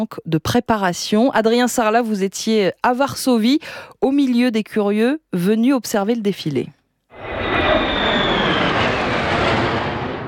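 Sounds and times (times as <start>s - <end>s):
speech: 0.0s - 6.8s
F-16 and F-35 fighter jets flying overhead: 7.1s - 10.2s.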